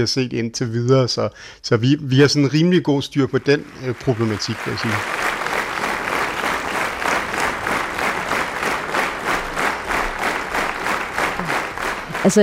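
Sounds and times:
speech: 0:00.0 - 0:05.2, 0:12.2 - 0:12.4
audience applause: 0:03.2 - 0:12.4.

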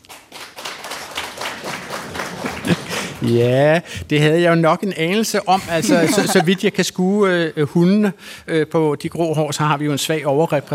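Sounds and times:
live audience clapping: 0:00.0 - 0:03.5
laughter: 0:02.4 - 0:03.2, 0:05.6 - 0:06.6
speech: 0:03.2 - 0:10.7.

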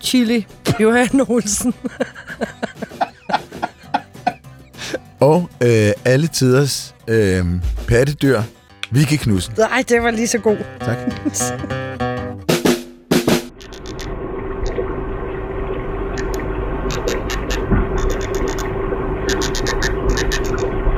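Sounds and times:
speech: 0:00.1 - 0:02.8, 0:05.2 - 0:11.9
laughter: 0:00.7 - 0:05.1, 0:10.9 - 0:11.8
porpoise recorded underwater: 0:13.5 - 0:20.9.

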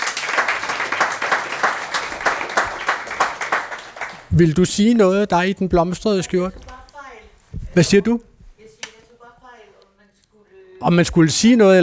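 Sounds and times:
audience applause in Dansk Sprognævn's headquarters in Bogense: 0:00.0 - 0:04.6
speech: 0:04.4 - 0:06.6, 0:07.8 - 0:08.3, 0:10.8 - 0:11.8.

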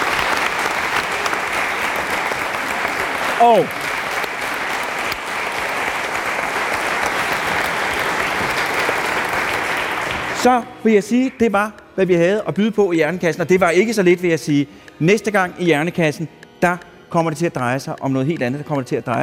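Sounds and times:
applause for the technicians: 0:00.0 - 0:10.5
speech: 0:03.4 - 0:03.8, 0:10.4 - 0:19.2.

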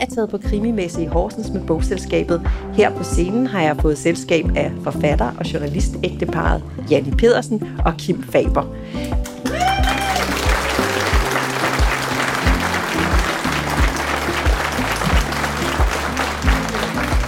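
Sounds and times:
speech: 0:00.0 - 0:09.2
low stepping bass line of music: 0:00.0 - 0:17.2
audience applause: 0:09.3 - 0:17.2.

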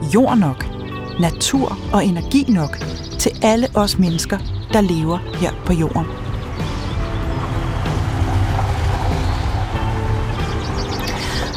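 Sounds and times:
speech: 0:00.1 - 0:06.2
car driving along a gravel road: 0:06.1 - 0:11.5.

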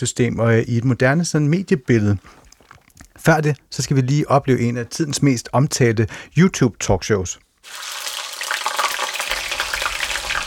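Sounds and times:
speech: 0:00.0 - 0:02.4, 0:03.2 - 0:08.1
deep fryer bubbling and sizzling in a grill bar: 0:07.6 - 0:10.4.

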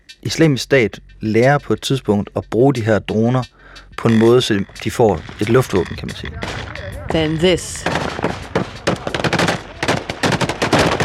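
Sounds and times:
speech: 0:00.2 - 0:08.4
gunfire aimed at a drone: 0:07.8 - 0:11.0.

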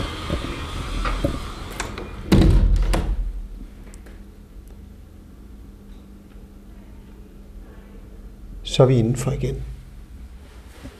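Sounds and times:
window being closed: 0:00.0 - 0:03.4
speech: 0:08.8 - 0:09.8.

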